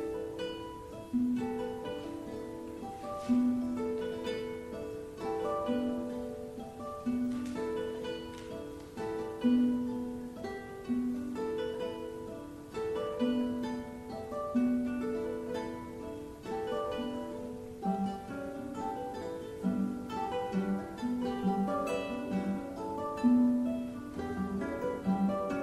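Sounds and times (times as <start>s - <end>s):
guitar ensemble playing: 0.0s - 25.6s.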